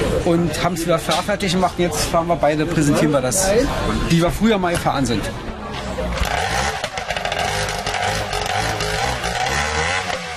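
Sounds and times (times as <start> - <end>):
speech: 0.2 - 6.4
racing boat engine roaring: 6.0 - 10.3.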